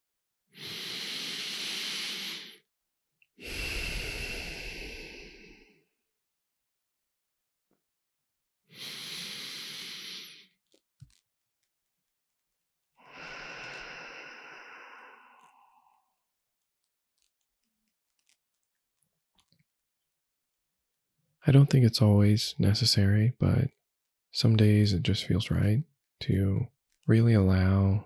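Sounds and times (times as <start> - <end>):
deep intentional breaths: 0.6 - 2.6, 3.4 - 5.8, 8.7 - 10.5, 13.0 - 16.2
speech: 21.5 - 23.8, 24.4 - 28.0.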